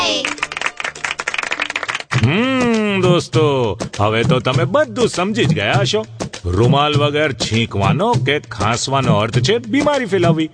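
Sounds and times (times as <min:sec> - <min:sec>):
hands clapping praising a child's good answer: 0:00.2 - 0:02.9
speech: 0:02.3 - 0:10.5.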